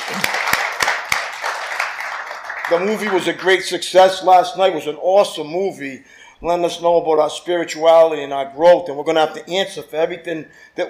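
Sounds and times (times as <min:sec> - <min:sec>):
audience applause: 0:00.0 - 0:03.4
speech: 0:02.7 - 0:10.8.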